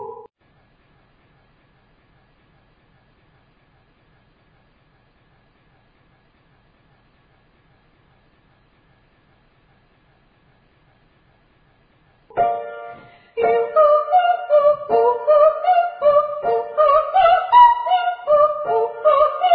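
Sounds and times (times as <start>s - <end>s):
very high triads and octaves: 12.3s - 19.5s.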